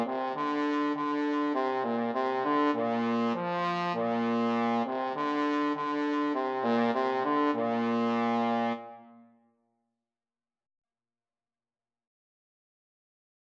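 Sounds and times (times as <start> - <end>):
trombone duet: 0.0 - 9.0.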